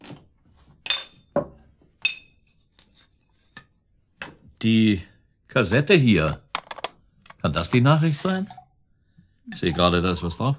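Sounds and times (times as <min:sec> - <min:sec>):
glasses clinking while drinks are made: 0:00.8 - 0:02.5
speech: 0:04.6 - 0:06.4, 0:07.4 - 0:08.6, 0:09.5 - 0:10.5.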